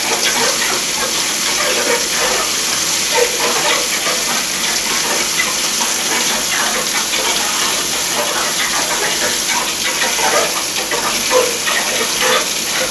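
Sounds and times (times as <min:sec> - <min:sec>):
boiler: 0:00.0 - 0:12.8.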